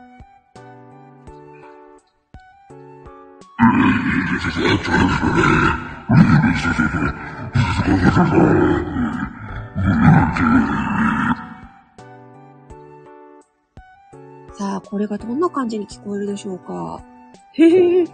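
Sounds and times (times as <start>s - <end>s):
speech: 3.6s - 11.1s, 14.9s - 18.1s
voice run through a monster voice-changer effect, death growls: 3.6s - 11.8s.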